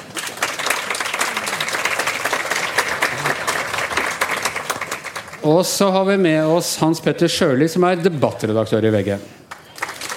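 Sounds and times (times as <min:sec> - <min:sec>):
audience applause: 0:00.0 - 0:05.6, 0:09.5 - 0:10.1
speech: 0:05.4 - 0:09.4.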